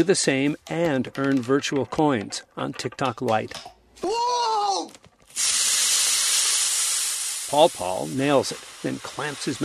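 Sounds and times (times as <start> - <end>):
speech: 0.0 - 4.2, 7.5 - 9.6
soda fizzing after Mentos dropped in: 5.3 - 9.6.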